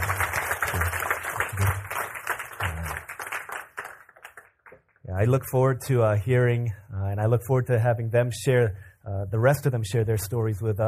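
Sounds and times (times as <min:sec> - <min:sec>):
audience applause: 0:00.0 - 0:04.8
speech: 0:05.2 - 0:10.8.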